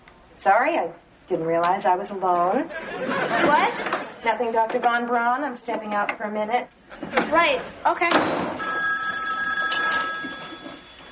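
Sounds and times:
speech: 0.4s - 8.8s
laughter: 2.6s - 4.9s
telephone ringing: 8.6s - 11.0s.

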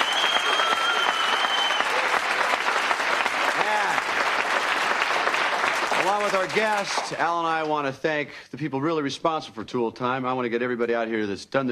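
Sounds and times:
studio audience applause: 0.0s - 7.8s
speech: 6.3s - 11.6s.

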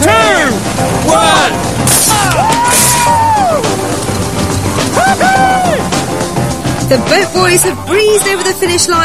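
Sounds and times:
applause and cheering from opposing team: 0.1s - 6.8s
speech: 6.9s - 9.0s.

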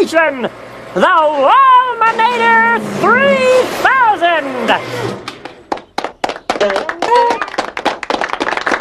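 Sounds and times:
speech: 0.2s - 5.3s, 6.6s - 7.0s
hands clapping: 5.2s - 8.7s.

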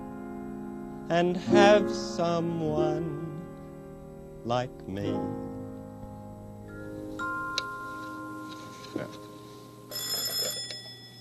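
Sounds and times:
speech: 1.1s - 3.4s, 4.4s - 5.5s
doorbell ringing: 6.7s - 11.1s.

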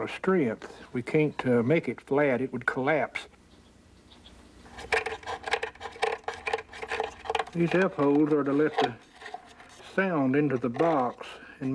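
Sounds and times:
speech: 0.0s - 3.3s, 7.6s - 9.1s, 10.0s - 11.7s
small curved-bottom wooden plane scooping out violin top: 4.8s - 11.7s.

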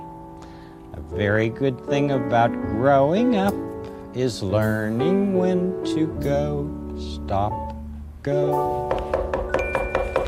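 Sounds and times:
speech: 0.9s - 9.0s
knocking at a door: 8.9s - 10.2s.

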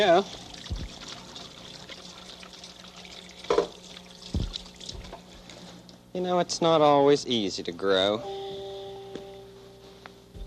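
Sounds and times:
speech: 0.0s - 0.4s, 6.1s - 8.4s
water running as someone washes their hands: 0.0s - 5.9s.

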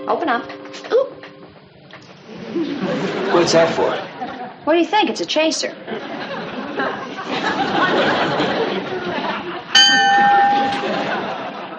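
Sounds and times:
speech: 0.1s - 1.0s, 2.3s - 6.0s
laughter: 2.3s - 4.7s, 5.8s - 11.7s
bell ringing: 9.8s - 11.7s.

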